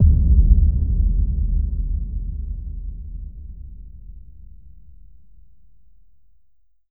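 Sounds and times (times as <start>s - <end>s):
impact sound effect: 0.0s - 4.2s.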